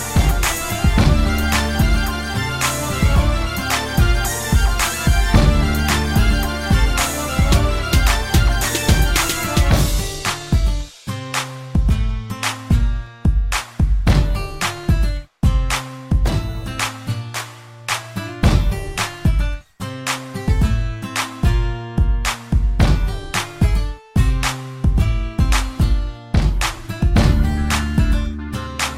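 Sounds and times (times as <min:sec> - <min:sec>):
acoustic hip hop melody: 0:00.0 - 0:28.9.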